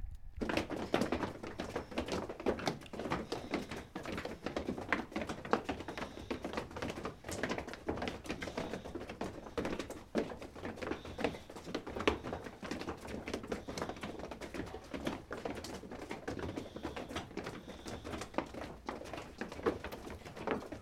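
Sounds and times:
crowd walking footsteps: 0.0s - 20.8s.

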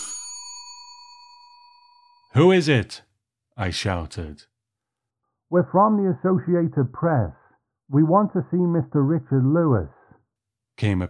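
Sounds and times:
doorbell chime: 0.0s - 2.4s
speech: 2.4s - 4.5s, 5.5s - 10.0s, 10.8s - 11.0s.

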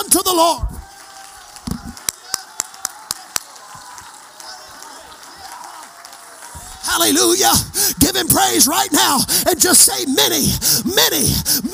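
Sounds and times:
speech: 0.0s - 0.7s, 7.0s - 11.7s
audience clapping hands: 0.0s - 8.7s.

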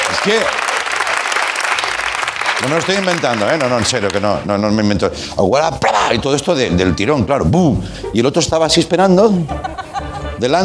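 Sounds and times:
crowd clapping: 0.0s - 4.5s
speech: 0.2s - 0.7s, 2.6s - 9.6s, 10.4s - 10.6s
laughter: 9.2s - 10.6s.

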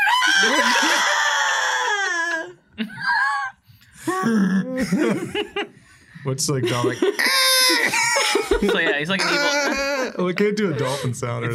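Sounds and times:
laughter: 0.0s - 1.5s, 4.7s - 5.8s, 6.5s - 11.5s
person imitating a dinosaur scream: 0.0s - 3.5s, 9.2s - 10.2s
speech: 0.4s - 1.1s, 4.2s - 7.4s, 8.6s - 11.5s.

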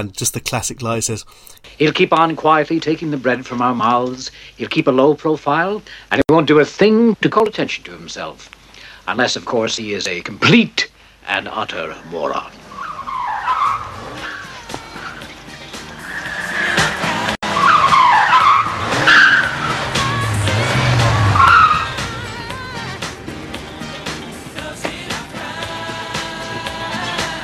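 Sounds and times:
speech: 0.0s - 12.7s
tires screeching as a red Ferrari skids to a stop in a film scene: 12.3s - 24.7s
red Ferrari engine rumbling: 13.7s - 25.4s.

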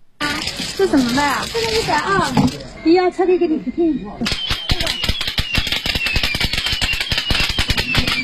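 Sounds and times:
electronic firecracker crackling: 0.2s - 2.8s, 4.2s - 8.2s
speech: 0.8s - 4.9s.

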